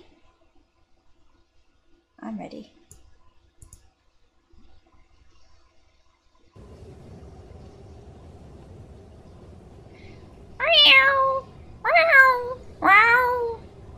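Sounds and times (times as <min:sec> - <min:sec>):
speech: 0:02.2 - 0:02.8
low rumbling background: 0:06.6 - 0:13.9
cat meowing cries: 0:10.6 - 0:13.6.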